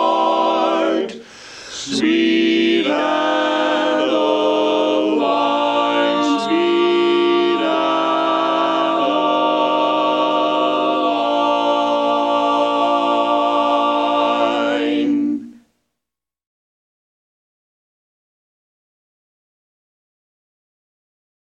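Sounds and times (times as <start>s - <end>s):
tenor singing: 0.0s - 15.6s.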